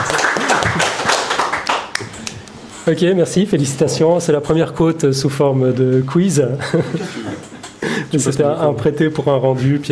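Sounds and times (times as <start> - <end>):
small group of audience clapping: 0.0 - 2.5
speech: 2.8 - 7.5, 8.1 - 9.8
laughter: 6.6 - 8.0.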